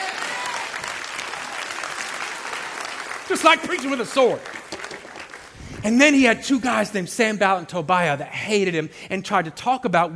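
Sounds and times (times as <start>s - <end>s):
audience clapping hands: 0.0s - 6.0s
speech: 3.3s - 4.6s, 5.8s - 10.1s.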